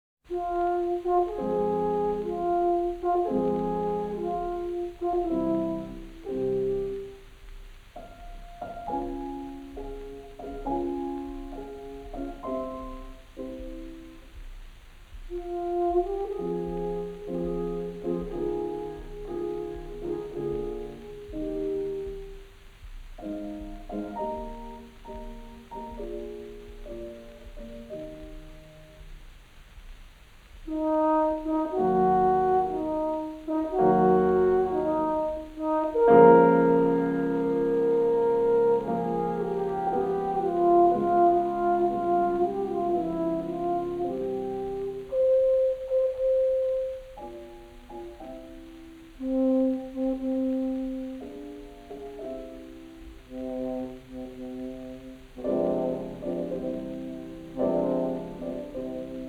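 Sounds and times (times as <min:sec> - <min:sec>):
horn sonata: 0:00.2 - 0:59.2.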